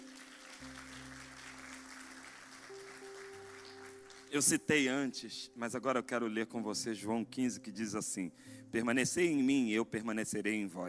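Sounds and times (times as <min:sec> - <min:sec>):
audience applause: 0:00.0 - 0:04.4
speech: 0:04.3 - 0:10.8.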